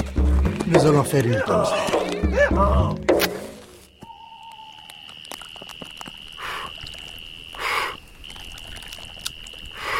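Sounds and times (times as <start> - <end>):
speech: 0.7 - 3.1
donkey braying: 1.3 - 3.1.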